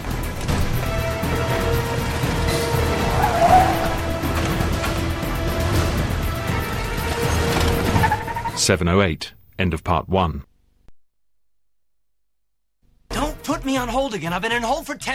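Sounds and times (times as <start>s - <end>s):
car starting and driving off fast: 0.3s - 8.6s
speech: 8.7s - 10.5s, 13.7s - 15.1s.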